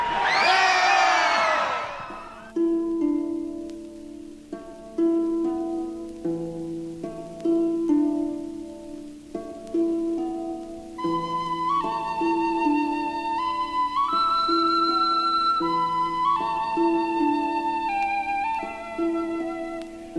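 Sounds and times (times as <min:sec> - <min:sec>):
large outdoor crowd cheering: 0:00.0 - 0:02.6
sustained musical notes: 0:02.5 - 0:20.1.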